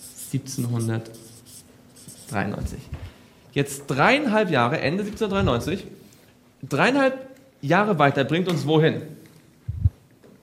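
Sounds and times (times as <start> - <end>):
scratchy writing strokes: 0.0 - 2.5
speech: 0.3 - 1.3, 2.3 - 6.0, 6.6 - 9.2.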